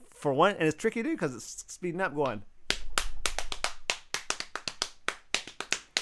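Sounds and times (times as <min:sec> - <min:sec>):
speech: 0:00.2 - 0:02.5
hands slapping on knees as percussion: 0:02.2 - 0:06.0.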